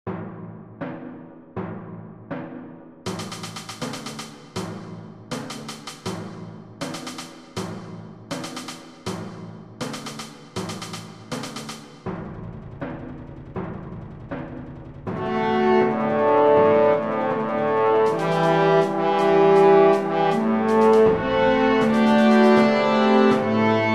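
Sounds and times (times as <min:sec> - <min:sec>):
brass overture: 0:15.1 - 0:23.9.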